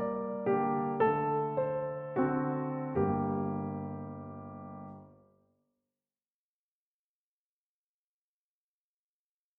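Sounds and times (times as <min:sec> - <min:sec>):
classical piano music on Pianoteq: 0:00.0 - 0:05.3.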